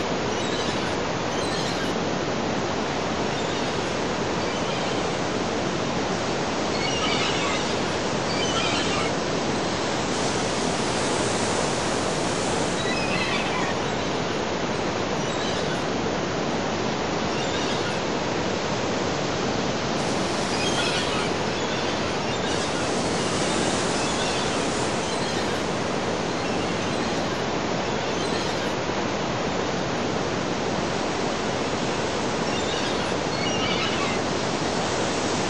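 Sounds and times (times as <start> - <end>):
ocean sea waves: 0.0 - 35.4
seagulls calling: 0.4 - 1.9, 3.1 - 5.6, 6.6 - 9.9, 12.6 - 14.4, 15.2 - 15.9, 20.0 - 27.4, 28.0 - 28.8, 32.4 - 34.4.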